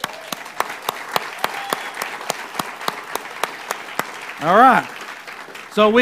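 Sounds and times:
crowd clapping in a steady even rhythm: 0.0s - 5.9s
speech: 4.4s - 5.0s, 5.8s - 5.9s.

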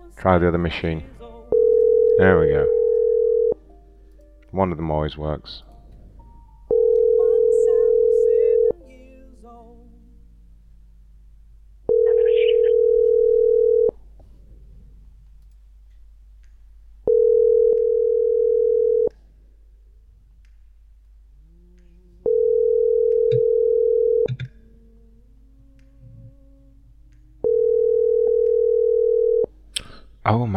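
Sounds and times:
speech: 0.1s - 1.2s, 2.2s - 2.8s, 4.5s - 5.7s
steady mid-pitched telephone tone: 1.5s - 3.6s, 6.7s - 8.8s, 11.9s - 14.0s, 17.1s - 19.1s, 22.2s - 24.5s, 27.4s - 29.5s
faint murmurs: 24.4s - 27.5s.

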